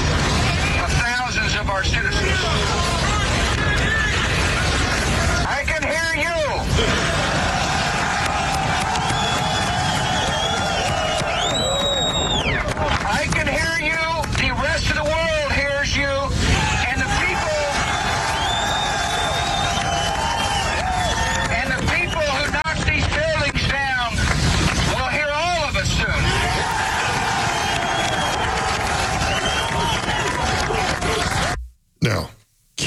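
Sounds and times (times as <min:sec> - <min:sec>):
constant rumbling din: 0:00.0 - 0:31.8
crowd of rescue workers cheering and shouting: 0:01.6 - 0:22.6, 0:24.9 - 0:31.6.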